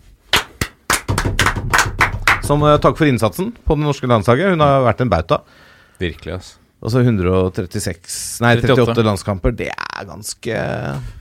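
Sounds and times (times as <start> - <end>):
applause: 0.3 - 2.6
speech: 2.5 - 11.1.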